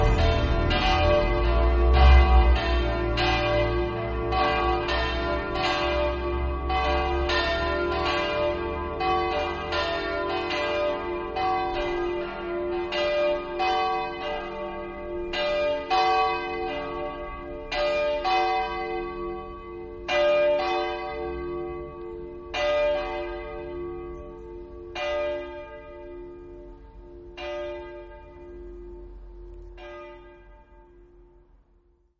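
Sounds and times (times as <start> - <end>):
bells ringing in Villegnove: 0.0 - 31.4.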